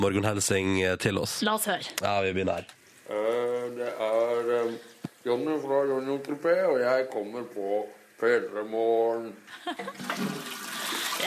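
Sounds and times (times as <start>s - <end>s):
speech: 0.0s - 10.6s
laughter: 9.5s - 10.1s
toilet flushing: 9.8s - 11.2s.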